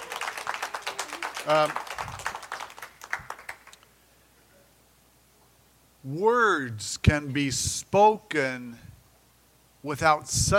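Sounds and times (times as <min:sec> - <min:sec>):
audience applause: 0:00.0 - 0:03.8
speech: 0:01.4 - 0:02.1, 0:06.0 - 0:08.9, 0:09.8 - 0:10.5.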